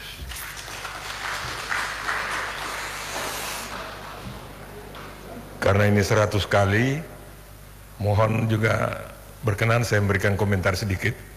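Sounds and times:
crowd applauding in a large room: 0.3s - 5.6s
speech: 5.6s - 7.1s, 8.0s - 11.3s.

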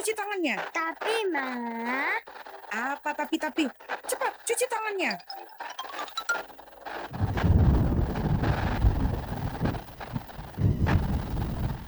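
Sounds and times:
speech: 0.0s - 7.5s
heavy rain: 7.1s - 11.8s.

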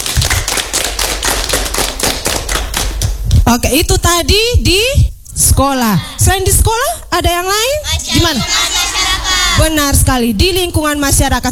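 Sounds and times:
people clapping: 0.0s - 3.4s
speech: 3.5s - 8.8s, 9.6s - 11.4s.

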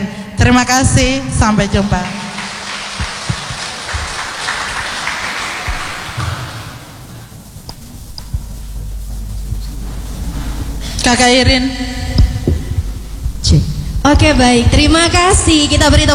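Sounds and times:
speech: 0.4s - 2.2s, 11.1s - 12.0s, 13.5s - 16.1s
low hum: 0.8s - 16.1s
crowd applauding: 1.8s - 7.3s.

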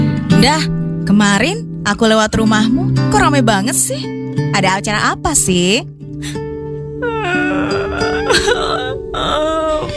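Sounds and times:
speech: 0.4s - 6.4s
girl crying: 7.0s - 9.9s.

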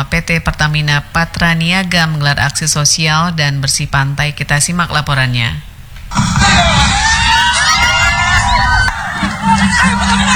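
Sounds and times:
speech: 0.0s - 6.8s, 9.4s - 10.3s
children shouting: 6.1s - 10.3s
crowd of residents chattering at beach: 6.1s - 10.3s
people laughing: 6.1s - 10.3s
people whooping: 6.1s - 10.3s.

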